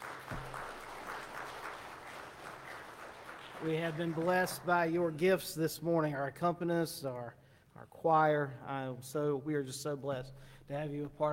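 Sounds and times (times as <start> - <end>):
crowd applauding: 0.0 - 4.9
speech: 3.6 - 11.3.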